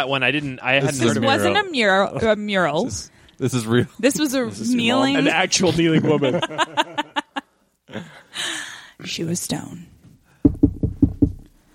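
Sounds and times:
speech: 0:00.0 - 0:07.1, 0:07.9 - 0:09.9
laughter: 0:04.7 - 0:08.2
knocking at the door: 0:10.4 - 0:11.5.

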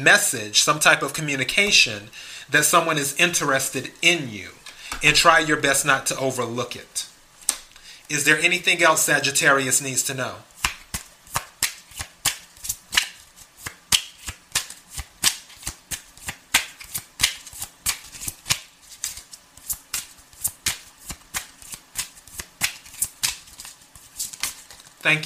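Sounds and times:
speech: 0:00.0 - 0:07.1, 0:08.1 - 0:10.5
tarot cards being shuffled: 0:10.6 - 0:25.2.

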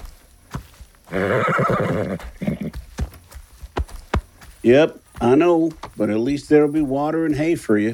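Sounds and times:
hollow clip-clop of hooves: 0:00.0 - 0:07.9
horse whinnying: 0:01.1 - 0:02.8
speech: 0:01.1 - 0:02.8, 0:04.6 - 0:07.9.

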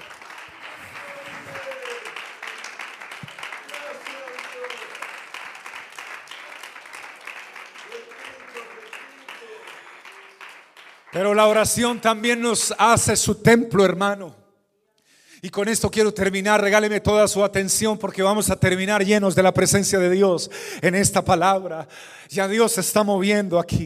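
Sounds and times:
audience applause: 0:00.0 - 0:11.7
speech: 0:11.2 - 0:14.4, 0:15.4 - 0:23.8.

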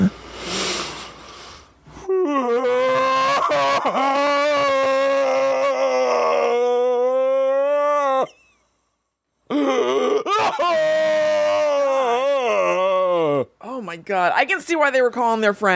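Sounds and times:
human voice imitating a cryptid's guttural howling and moaning: 0:02.1 - 0:08.4, 0:09.5 - 0:13.6
speech: 0:14.1 - 0:15.7.

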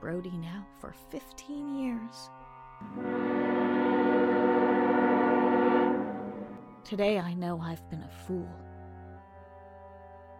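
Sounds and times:
speech: 0:00.0 - 0:03.9, 0:06.8 - 0:08.7
train whistle: 0:02.8 - 0:06.8
low rumbling undertone: 0:02.8 - 0:06.9.

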